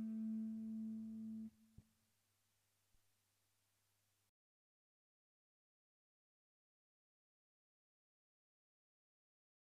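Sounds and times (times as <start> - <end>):
guitar playing an embellishment study: 0.0 - 1.5.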